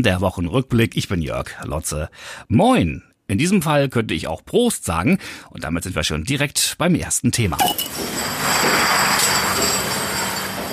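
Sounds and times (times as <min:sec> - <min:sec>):
speech: 0:00.0 - 0:08.5
brewery conveyor belt carrying beer: 0:07.9 - 0:10.7.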